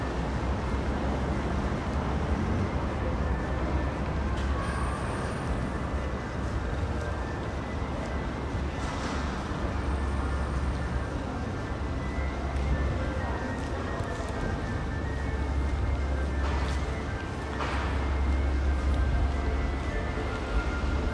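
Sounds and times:
bus engine rumble in Dubai: 0.0s - 21.1s
road noise: 0.0s - 21.1s
faint voices murmuring: 0.1s - 21.1s.

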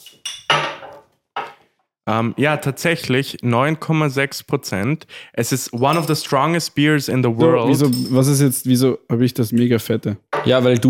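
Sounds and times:
beer glasses clinking in a toast: 0.0s - 1.6s, 5.8s - 6.4s, 7.4s - 8.4s
speech: 2.1s - 10.8s.

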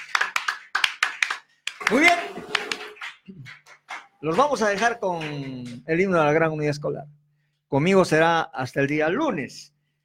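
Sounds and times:
audience applauding: 0.0s - 5.8s
speech: 1.9s - 2.4s, 4.2s - 9.8s.

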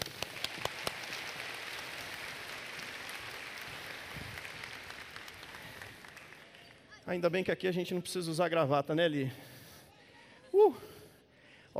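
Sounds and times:
crowd applauding: 0.0s - 7.0s
speech: 7.1s - 9.6s.

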